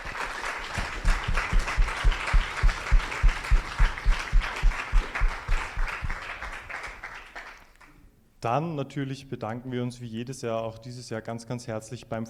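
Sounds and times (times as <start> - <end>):
audience applauding then clapping in unison: 0.0 - 8.0
speech: 8.4 - 12.2.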